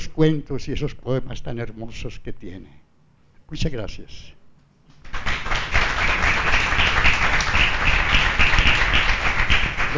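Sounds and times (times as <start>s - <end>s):
speech: 0.2s - 2.8s, 3.5s - 4.4s
crowd applauding: 5.1s - 9.9s.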